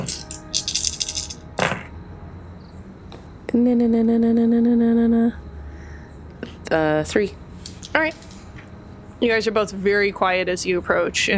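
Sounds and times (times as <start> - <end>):
dice rolling on a table: 0.0 - 1.4
speech: 3.6 - 5.5, 6.7 - 7.4, 8.0 - 8.3, 9.2 - 11.3.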